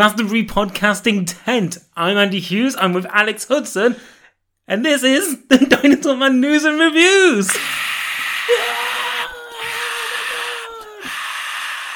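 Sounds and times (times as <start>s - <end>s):
speech: 0.0s - 7.9s
festival crowd cheering wildly: 7.6s - 11.9s.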